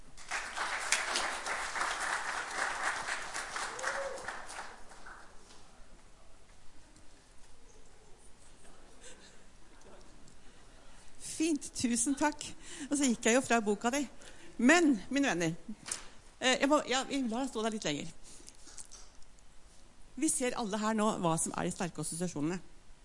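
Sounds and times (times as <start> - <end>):
audience applause: 0.1 - 5.4
speech: 11.6 - 18.2, 20.2 - 22.7.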